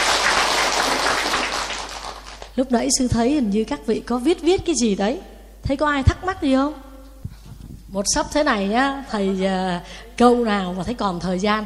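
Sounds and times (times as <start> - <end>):
crowd clapping: 0.0 - 2.6
speech: 2.6 - 6.8, 7.9 - 11.6.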